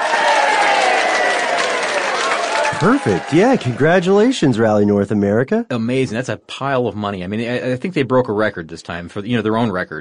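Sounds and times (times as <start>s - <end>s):
canned applause sound effect cue: 0.0s - 5.0s
speech: 2.8s - 9.9s.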